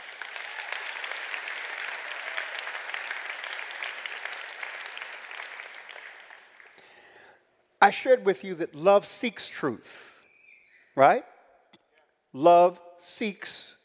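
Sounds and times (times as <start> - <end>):
audience hand clapping: 0.0 - 7.0
speech: 7.8 - 10.1, 11.0 - 11.3, 12.4 - 13.8.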